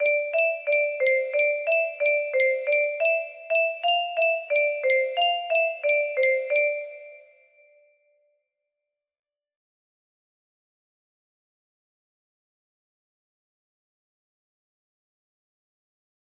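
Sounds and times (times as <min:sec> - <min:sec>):
music box melody: 0:00.0 - 0:07.6.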